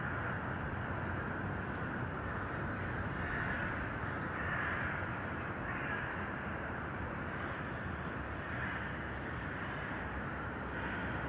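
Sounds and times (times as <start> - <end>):
steady low traffic rumble: 0.0 - 11.2
harsh crow caws: 2.3 - 6.2, 7.3 - 10.0, 10.7 - 11.2.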